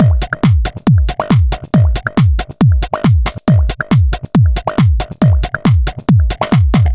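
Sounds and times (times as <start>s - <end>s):
dance drum loop: 0.0s - 6.9s.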